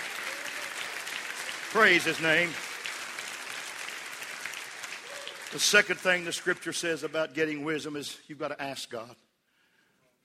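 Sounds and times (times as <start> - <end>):
audience clapping hands: 0.0 - 7.6
speech: 1.7 - 2.6, 5.5 - 9.2.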